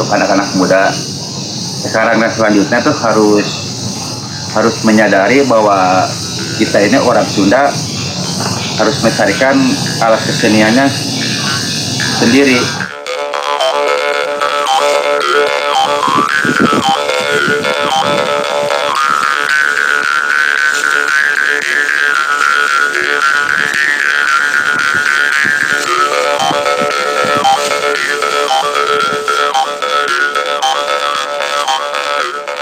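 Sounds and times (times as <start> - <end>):
karinding bamboo jaw harps playing buzzing drone with overtone melody: 0.0 - 32.6
speech: 0.1 - 1.1, 1.8 - 3.6, 4.5 - 7.9, 8.8 - 11.1, 12.2 - 12.9.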